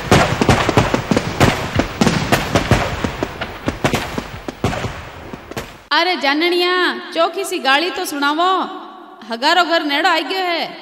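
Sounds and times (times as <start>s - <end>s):
firecracker bombs going off: 0.0s - 5.9s
speech: 5.9s - 10.7s.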